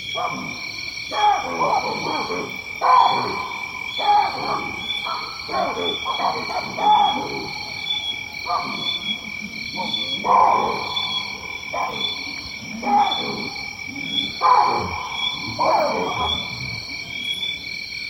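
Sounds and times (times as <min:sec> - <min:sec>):
lion in Tanzania giving deep low grunts: 0:00.2 - 0:17.5.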